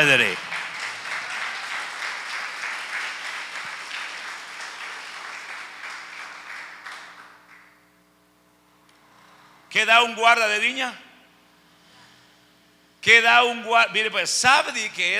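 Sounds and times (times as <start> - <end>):
speech: 0.0 - 0.5, 9.7 - 11.0, 13.0 - 15.1
audience applause: 0.0 - 7.8.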